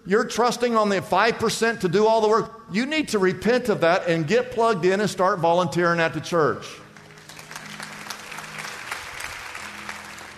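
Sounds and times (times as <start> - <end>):
speech: 0.1 - 6.8
crowd clapping: 6.9 - 10.3.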